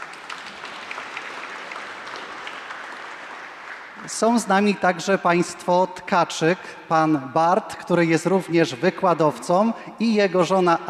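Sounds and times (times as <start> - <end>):
audience clapping: 0.0 - 5.2
speech: 4.0 - 10.8.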